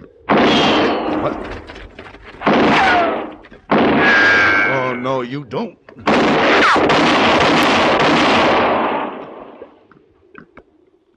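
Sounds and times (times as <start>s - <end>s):
gunshot in a confrontation: 0.3s - 1.6s, 2.4s - 5.0s, 6.0s - 9.8s
speech: 1.2s - 1.6s, 5.2s - 7.4s.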